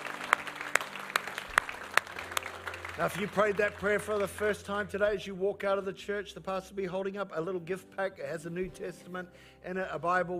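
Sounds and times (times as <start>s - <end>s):
church audience applause: 0.0s - 4.9s
speech: 3.0s - 10.3s.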